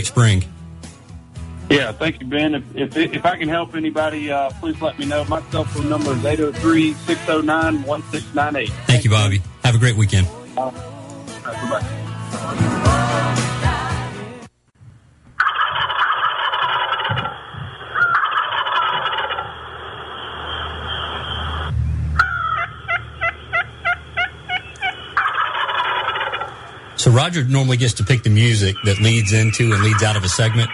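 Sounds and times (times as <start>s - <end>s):
speech: 0.0s - 0.6s, 1.7s - 13.0s, 27.0s - 30.7s
wild turkeys gobbling: 15.4s - 27.0s, 27.7s - 30.7s.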